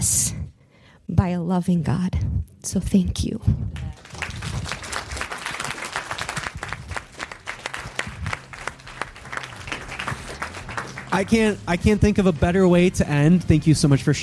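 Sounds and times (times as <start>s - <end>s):
speech: 1.1s - 4.0s, 11.1s - 14.2s
audience applause: 3.8s - 11.6s.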